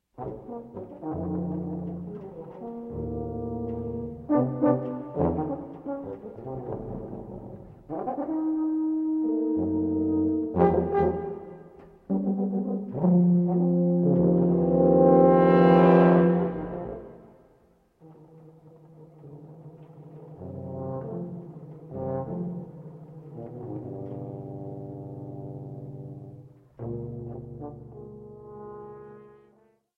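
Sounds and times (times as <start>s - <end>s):
tuba quartet: 0.0s - 29.9s.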